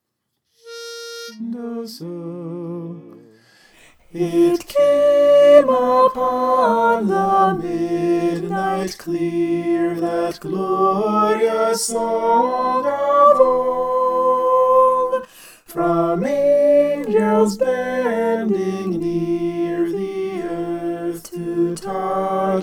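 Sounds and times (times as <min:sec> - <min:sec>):
soprano singing: 0:03.8 - 0:22.6.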